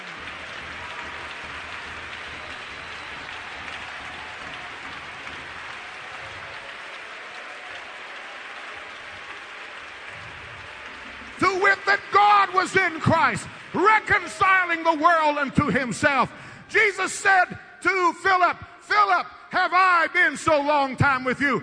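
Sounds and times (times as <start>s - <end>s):
audience clapping hands: 0.0s - 17.0s
speech: 11.8s - 21.6s.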